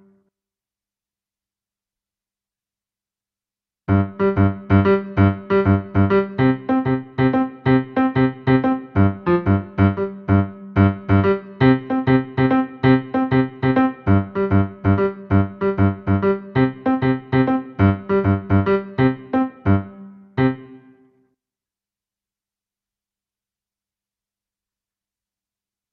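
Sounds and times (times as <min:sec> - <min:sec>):
piano: 0:03.9 - 0:21.0.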